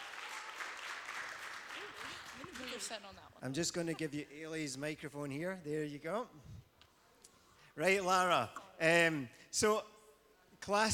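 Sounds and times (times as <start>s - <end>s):
round of applause: 0.0s - 3.1s
speech: 1.9s - 6.6s, 7.8s - 10.0s, 10.6s - 10.9s.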